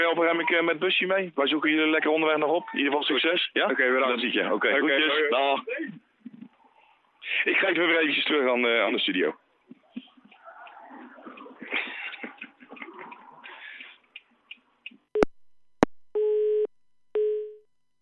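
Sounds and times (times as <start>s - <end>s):
speech: 0.0s - 6.0s, 7.3s - 9.4s
laughter: 9.8s - 14.2s
telephone beeps: 16.2s - 17.6s.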